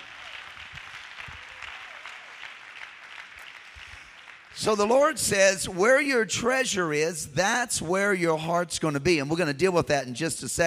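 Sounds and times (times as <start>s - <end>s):
audience clapping hands: 0.0s - 5.5s
speech: 4.6s - 10.6s.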